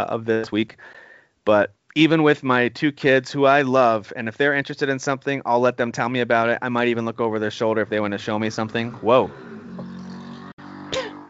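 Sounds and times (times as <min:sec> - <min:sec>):
speech: 0:00.0 - 0:09.6
fart: 0:09.0 - 0:11.2.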